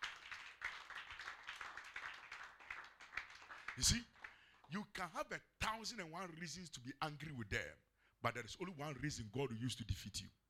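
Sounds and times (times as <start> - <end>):
audience clapping hands: 0.0 - 5.0
speech: 3.8 - 10.4.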